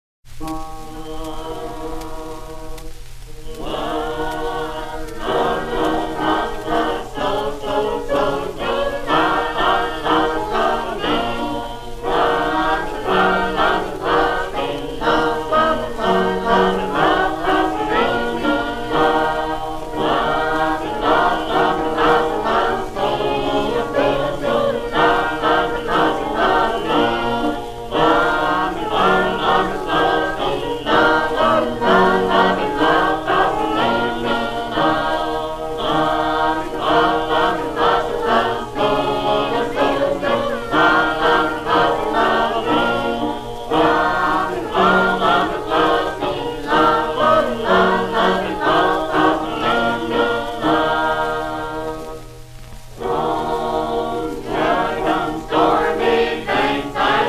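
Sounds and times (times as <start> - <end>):
Sacred Harp shape-note choir singing: 0.4 - 57.2.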